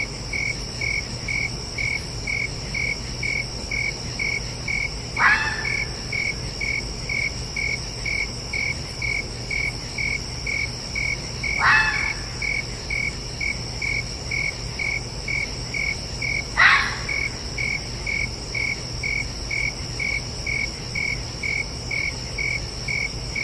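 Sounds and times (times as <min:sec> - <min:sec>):
crickets chirping: 0:00.0 - 0:23.4
red fox barking: 0:05.2 - 0:06.3, 0:11.6 - 0:12.4, 0:16.6 - 0:17.3.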